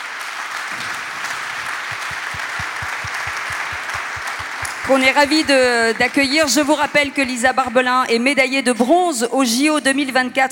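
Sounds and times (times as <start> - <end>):
large audience applause: 0.0 - 7.4
rhythmic low thumps: 1.2 - 7.9
speech: 4.9 - 10.5.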